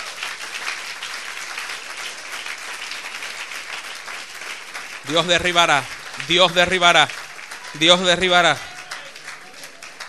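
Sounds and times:
congregation applauding in a church service: 0.0s - 10.0s
speech: 5.1s - 8.7s.

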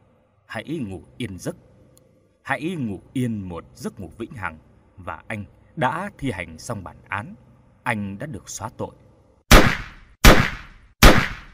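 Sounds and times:
speech: 0.5s - 1.7s, 2.5s - 9.0s
gunshots fired in succession: 9.5s - 11.5s.

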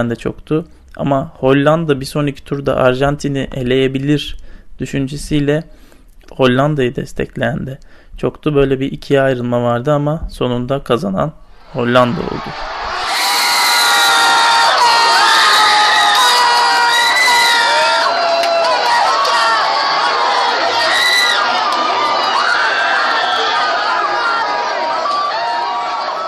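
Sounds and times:
speech: 0.0s - 12.8s
street crowd on Aspicueta street screaming and cheering after the Netherlands win a match: 11.5s - 26.2s.

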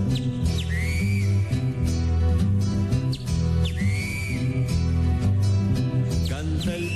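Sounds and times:
steady full instrumental music: 0.0s - 6.9s
whistled imitation of a great kiskadee call: 0.1s - 1.6s, 3.1s - 4.7s.

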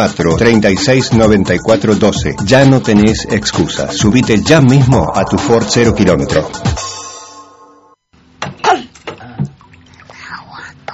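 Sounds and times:
speech: 0.0s - 6.9s
short sustained tone: 4.0s - 8.1s.

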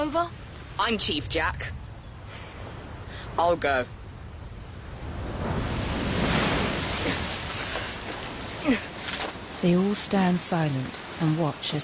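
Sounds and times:
speech: 0.0s - 1.8s, 3.4s - 4.0s, 8.6s - 8.9s, 9.6s - 11.8s
ocean swell washing over flat tilting rocks: 4.2s - 11.8s.

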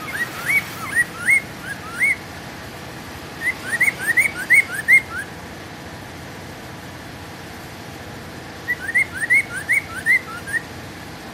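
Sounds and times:
bird whistling upward-sweeping notes: 0.0s - 2.3s, 3.4s - 5.4s, 8.6s - 10.7s.

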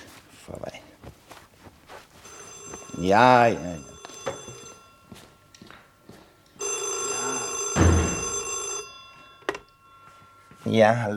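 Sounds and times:
speech: 0.5s - 0.7s, 3.0s - 3.9s, 10.7s - 11.1s
telephone bell ringing: 2.2s - 11.1s.

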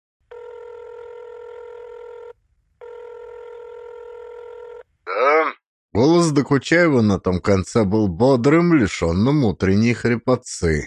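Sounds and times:
telephone ringback tone while placing a call: 0.3s - 4.8s
speech: 6.0s - 10.8s.

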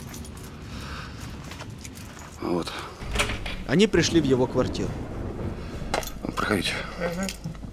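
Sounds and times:
keys jangling: 0.0s - 0.8s, 1.5s - 3.6s
speech: 2.4s - 3.0s, 3.7s - 5.1s, 6.5s - 7.6s.

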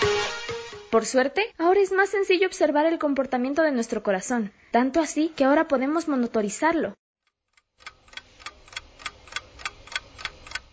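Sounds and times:
speech: 0.9s - 7.0s
clock ticking: 7.2s - 10.7s.

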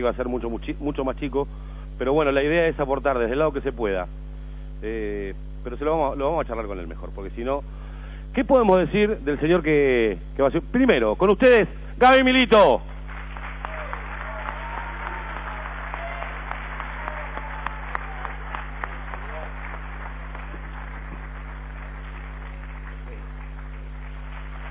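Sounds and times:
speech: 0.0s - 12.9s
audience applause: 13.1s - 24.6s.

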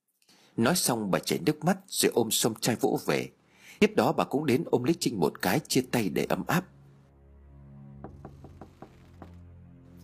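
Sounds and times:
speech: 0.6s - 6.8s
knocking on a door: 8.0s - 9.4s.

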